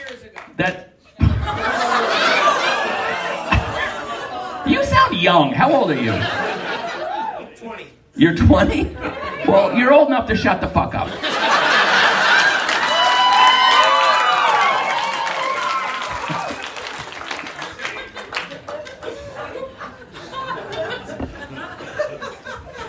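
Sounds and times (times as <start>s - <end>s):
applause: 0.0s - 0.6s, 12.3s - 19.0s
speech: 0.6s - 0.9s, 5.2s - 6.4s, 8.2s - 11.4s
audience laughing: 1.1s - 7.6s, 8.6s - 9.8s, 11.0s - 13.2s, 16.0s - 22.8s
audience cheering: 1.5s - 4.6s, 11.4s - 19.2s.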